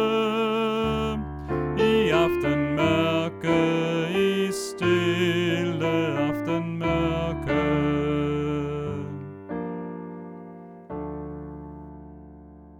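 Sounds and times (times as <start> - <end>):
soprano and alto voices: 0.0 - 9.7.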